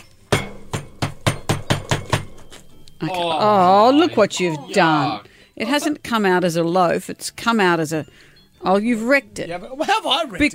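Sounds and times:
metal baking tin banged against a hard surface: 0.3s - 2.5s
speech: 3.0s - 10.5s.

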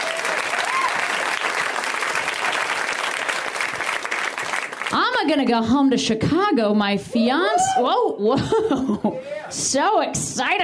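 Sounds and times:
audience applause for the guests: 0.0s - 5.0s
speech: 4.9s - 10.6s
laughter: 7.3s - 9.5s.

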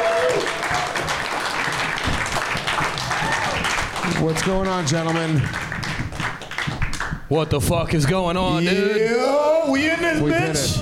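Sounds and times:
applause: 0.0s - 7.3s
speech: 4.2s - 5.6s, 7.3s - 10.8s.

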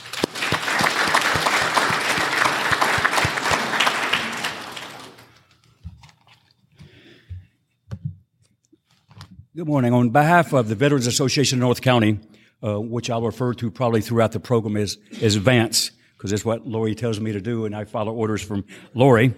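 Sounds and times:
audience applause: 0.0s - 5.4s
speech: 9.6s - 19.3s.

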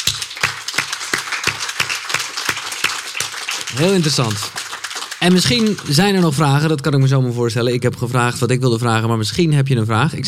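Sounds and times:
audience applause: 0.0s - 6.8s
speech: 3.7s - 4.6s, 5.2s - 10.2s.

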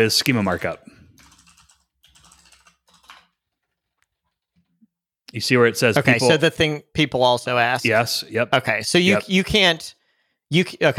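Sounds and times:
speech: 0.0s - 0.9s, 5.3s - 10.9s
typing a search query on a computer keyboard: 1.2s - 3.8s.

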